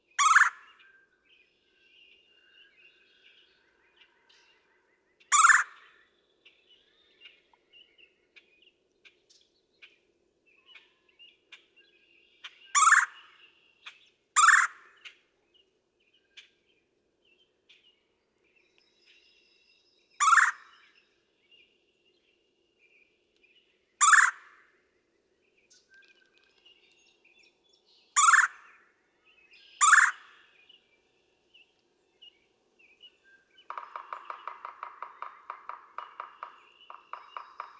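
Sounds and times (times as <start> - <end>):
red-bellied woodpecker churr calls: 0.2 - 0.7, 5.3 - 5.9, 12.4 - 15.2, 20.2 - 20.8, 24.0 - 24.6, 28.2 - 28.8, 29.8 - 30.5, 33.7 - 37.7.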